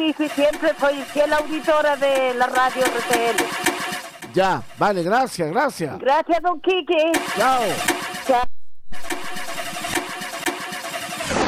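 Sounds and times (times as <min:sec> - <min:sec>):
car engine cranking, failing to start: 0:00.0 - 0:05.8, 0:07.0 - 0:11.4
speech: 0:00.0 - 0:08.6
sharp clicks or bangs: 0:02.0 - 0:04.4, 0:07.1 - 0:08.3, 0:09.0 - 0:11.4.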